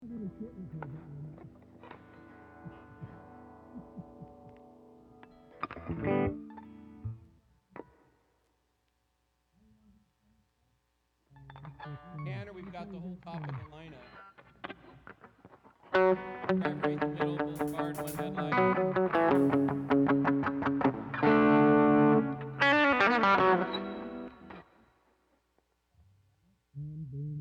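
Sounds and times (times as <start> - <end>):
strings emphasis music mix: 16.3 - 24.3.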